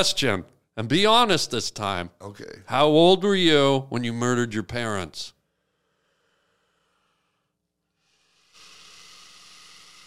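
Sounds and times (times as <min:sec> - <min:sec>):
speech: 0:00.0 - 0:05.4
person hissing through teeth: 0:08.0 - 0:10.0.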